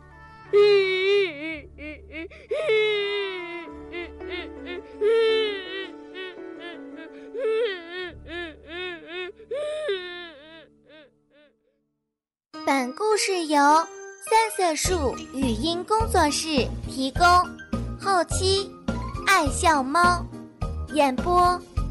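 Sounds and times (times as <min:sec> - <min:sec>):
speech: 0:00.5 - 0:00.8, 0:13.2 - 0:21.7
voice performing two children crying: 0:00.5 - 0:11.5.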